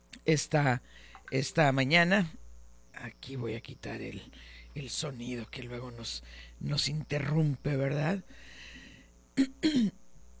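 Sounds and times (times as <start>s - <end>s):
speech: 0.2s - 2.4s, 3.0s - 8.5s, 9.4s - 10.0s
throat clearing: 9.4s - 10.0s.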